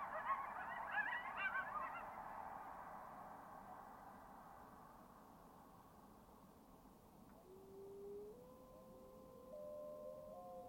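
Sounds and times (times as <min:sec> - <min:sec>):
coyotes and wolves yipping and howling in a glacial valley: 0:00.0 - 0:02.8, 0:07.3 - 0:10.6
thin steady howls: 0:00.0 - 0:10.6.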